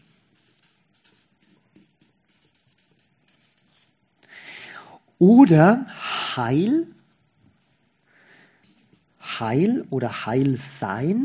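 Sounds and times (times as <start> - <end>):
word written by hand: 0.0 - 4.1, 8.2 - 11.2
speech: 5.2 - 7.0, 9.4 - 11.2.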